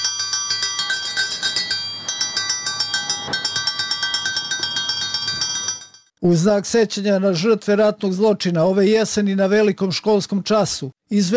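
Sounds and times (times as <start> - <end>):
school bell ringing at an outdoor peace commemoration: 0.0 - 6.1
speech: 6.2 - 11.3.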